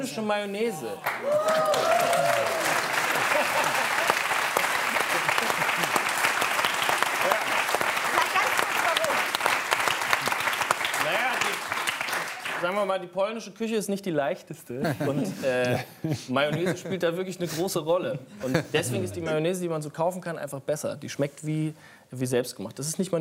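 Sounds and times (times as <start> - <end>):
speech: 0.0 - 3.8, 12.6 - 23.1
audience applause: 1.0 - 12.8
laughter: 2.1 - 6.6, 14.8 - 17.6, 18.3 - 19.3.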